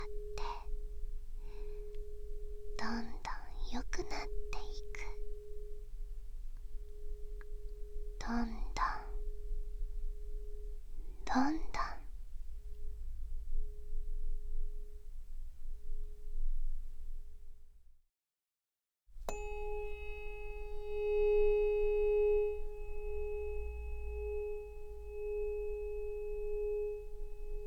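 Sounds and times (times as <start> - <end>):
tuning fork ringing with a pure tone: 0.0 - 17.7, 19.2 - 27.6
low rumble: 0.0 - 17.8
speech: 2.8 - 5.2, 8.3 - 8.6.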